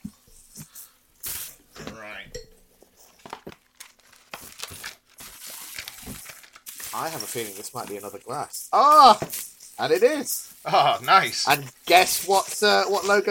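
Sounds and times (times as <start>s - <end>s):
unwrapping a gift, crinkling wrapping: 3.0s - 13.2s
speech: 7.0s - 13.2s.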